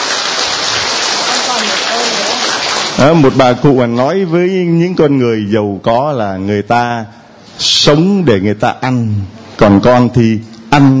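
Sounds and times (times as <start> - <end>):
audience applause: 0.0 - 3.5
speech: 3.0 - 7.2, 7.8 - 10.9.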